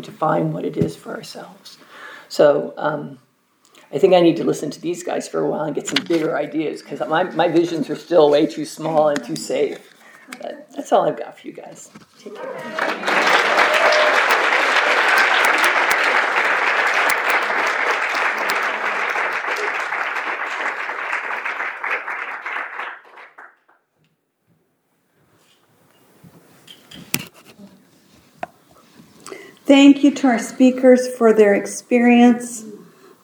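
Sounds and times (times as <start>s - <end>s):
speech: 0.0s - 3.2s, 3.9s - 13.6s, 29.7s - 32.7s
audience applause: 12.3s - 23.6s.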